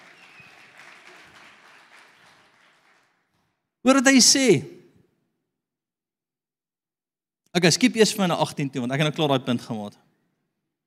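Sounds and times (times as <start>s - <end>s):
audience applause: 0.0s - 3.6s
speech: 3.8s - 4.7s, 7.6s - 10.1s.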